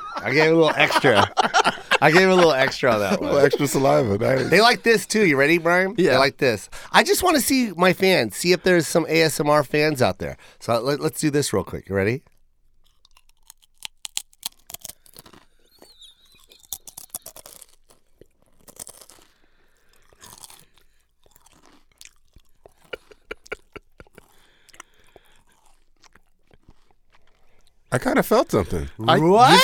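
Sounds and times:
laughter: 0.0 - 6.4, 22.8 - 24.3, 29.0 - 29.6
speech: 0.2 - 12.3, 27.9 - 29.6
crunchy chewing of a lettuce and pickle sandwich with Sun Chips: 12.2 - 27.9.

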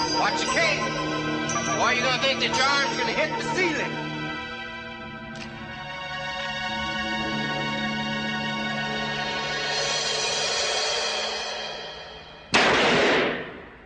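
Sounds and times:
steady droning tones: 0.0 - 11.2
speech: 1.8 - 4.0
handgun fired at a target: 12.5 - 13.6.

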